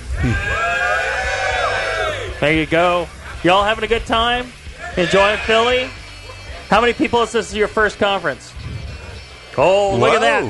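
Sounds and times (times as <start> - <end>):
large crowd at live conference screaming and cheering: 0.0 - 3.4, 4.7 - 6.7
speech: 0.2 - 0.6, 2.4 - 6.0, 6.7 - 8.5, 9.6 - 10.4.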